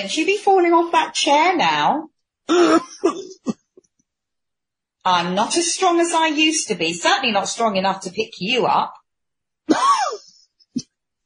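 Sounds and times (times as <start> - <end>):
speech: 0.0 - 3.6, 5.0 - 9.0
man coughing: 2.5 - 3.6, 9.7 - 10.3.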